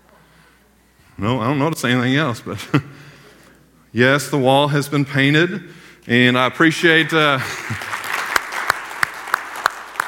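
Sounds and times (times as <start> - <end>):
speech: 1.2 - 3.1, 3.9 - 7.9
audience clapping: 7.2 - 10.0.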